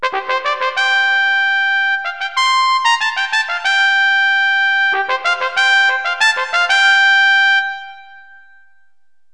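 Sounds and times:
trumpet: 0.0 - 8.9.

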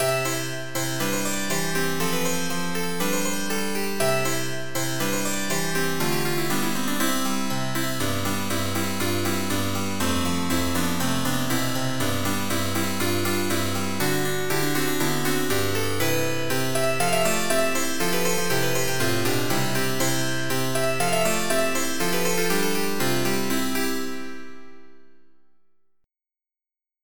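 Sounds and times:
baroque music: 0.0 - 25.0.

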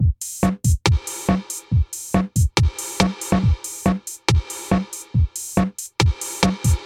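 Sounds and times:
drum: 0.0 - 6.8.

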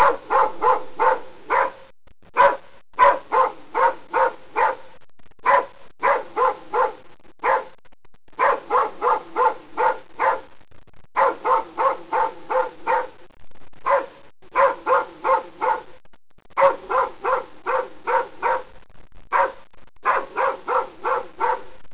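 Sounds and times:
dogs: 0.0 - 1.8, 2.4 - 4.8, 5.5 - 7.7, 8.4 - 10.5, 11.2 - 13.2, 13.8 - 15.9, 16.6 - 18.7, 19.3 - 21.7.

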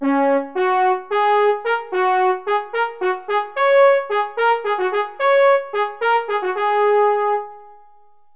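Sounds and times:
French horn: 0.0 - 8.0.

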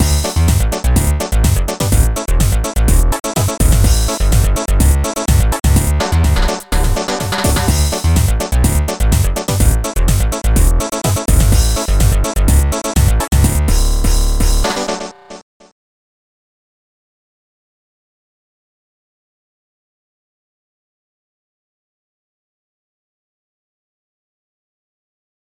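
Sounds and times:
tune: 0.0 - 15.4.

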